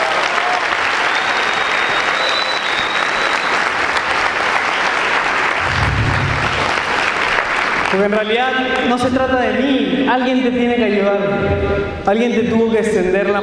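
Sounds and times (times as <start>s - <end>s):
audience applause: 0.0s - 8.0s
speech: 7.9s - 13.4s.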